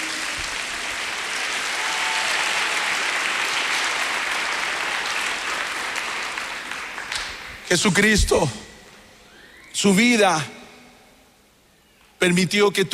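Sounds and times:
audience applauding: 0.0 - 7.7
speech: 7.7 - 8.6, 9.8 - 10.6, 12.2 - 12.9.

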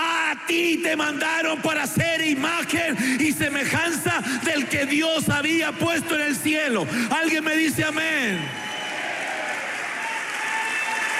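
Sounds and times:
speech: 0.3 - 8.7
church congregation clapping: 7.6 - 11.1.

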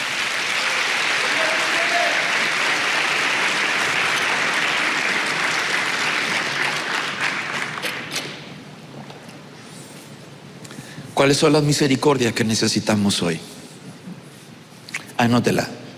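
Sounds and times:
audience clapping hands: 0.0 - 8.5
speech: 11.2 - 13.6, 15.2 - 15.8.

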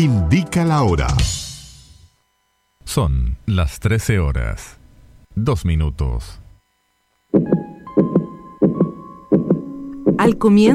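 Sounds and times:
speech: 0.0 - 1.4, 2.9 - 4.8, 5.4 - 6.4, 7.3 - 7.6, 10.2 - 10.7
faint humming tones: 0.5 - 10.7
fetal heartbeat: 7.3 - 10.7.

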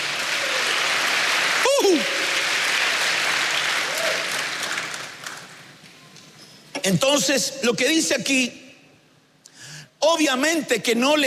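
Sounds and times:
audience applauding: 0.0 - 5.7
speech: 1.9 - 2.2, 6.8 - 8.6, 10.0 - 11.2.

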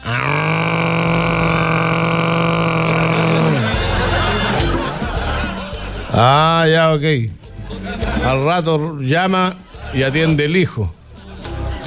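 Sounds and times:
voice imitating a blender: 0.0 - 4.9
laughter: 0.1 - 6.9, 7.5 - 10.4
speech: 6.2 - 7.4, 8.2 - 11.0.

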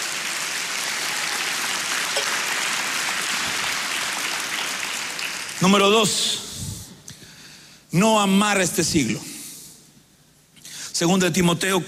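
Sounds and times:
audience clapping: 0.0 - 6.2
speech: 5.6 - 6.4, 7.9 - 9.3, 11.0 - 11.8.

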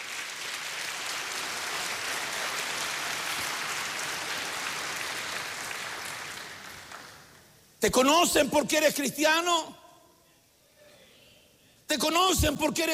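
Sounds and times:
audience clapping hands: 0.0 - 7.6
speech: 7.8 - 9.8, 11.9 - 12.9.

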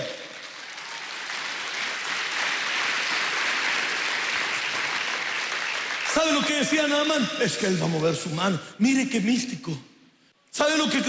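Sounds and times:
audience applauding: 0.0 - 7.2
speech: 6.2 - 9.9, 10.6 - 11.0.

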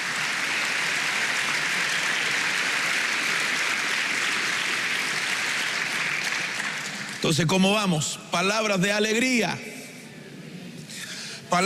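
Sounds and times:
audience clapping hands: 0.0 - 7.6
speech: 7.2 - 9.7.

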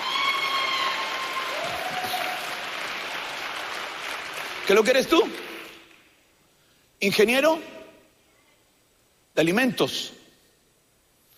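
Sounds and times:
audience applause: 0.0 - 6.0
speech: 4.7 - 5.4, 7.0 - 7.8, 9.4 - 10.2.

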